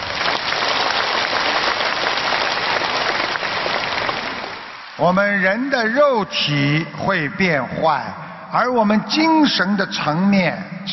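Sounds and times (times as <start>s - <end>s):
audience applause: 0.0s - 5.1s
speech: 5.0s - 10.9s.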